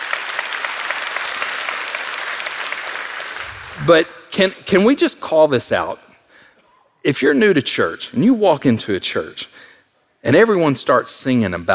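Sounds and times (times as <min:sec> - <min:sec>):
audience applauding: 0:00.0 - 0:04.1
speech: 0:03.8 - 0:06.0, 0:07.0 - 0:11.7.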